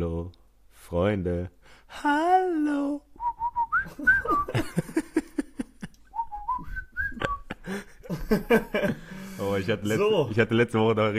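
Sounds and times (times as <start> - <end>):
speech: 0.0 - 3.2, 3.8 - 4.9, 7.7 - 11.1
person whistling: 3.2 - 4.6, 6.1 - 7.6
laughter: 3.9 - 9.6.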